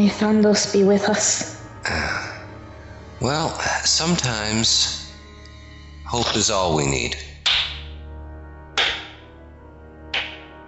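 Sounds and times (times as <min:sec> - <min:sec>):
speech: 0:00.0 - 0:02.3, 0:03.2 - 0:05.0, 0:06.1 - 0:07.3
slow sarcastic clapping echoing in cavern: 0:07.5 - 0:08.0, 0:08.8 - 0:09.4, 0:10.1 - 0:10.6.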